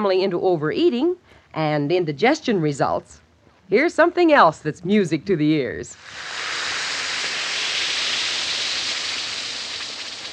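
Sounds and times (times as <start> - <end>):
speech: 0.0 - 6.4
Alka-Seltzer tablet fizzing in water: 6.0 - 10.3.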